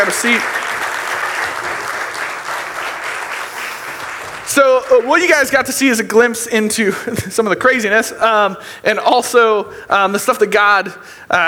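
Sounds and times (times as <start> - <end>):
audience applause: 0.0 - 6.0
speech: 0.1 - 0.7, 4.5 - 11.4.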